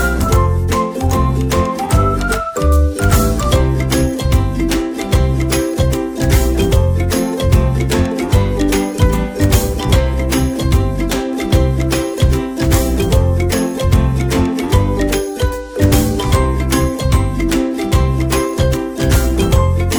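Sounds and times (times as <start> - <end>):
cute music: 0.0 - 19.9.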